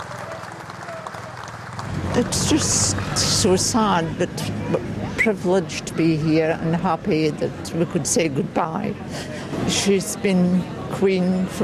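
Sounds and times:
large crowd cheering and applauding: 0.0 - 3.5
speech: 2.2 - 11.6.

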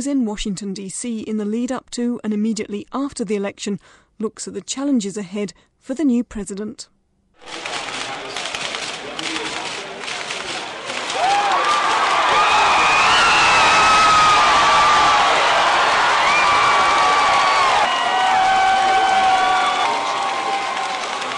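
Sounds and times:
speech: 0.0 - 7.7
election night crowd cheering: 7.5 - 21.3.

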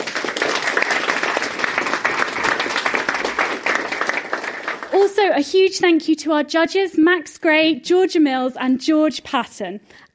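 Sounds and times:
audience applause: 0.0 - 5.1
speech: 5.1 - 10.1.

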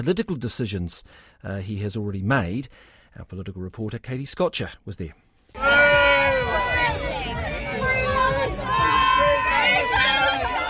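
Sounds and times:
speech: 0.0 - 5.8
protesters yelling at Prime Minister Christopher Luxon at Big Gay Out festival: 5.6 - 10.6.

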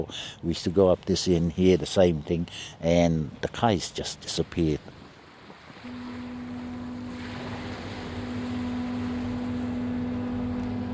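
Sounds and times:
speech: 0.0 - 5.0
wind: 0.0 - 10.9
water wash: 4.9 - 10.9
barge engine drone on Tauranga Harbour: 5.8 - 10.9.

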